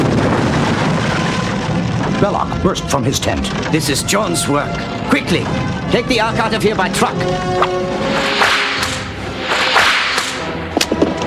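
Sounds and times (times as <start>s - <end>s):
airplane exploding after gasoline caught fire: 0.0s - 4.1s, 8.0s - 10.6s
speech: 2.2s - 8.4s.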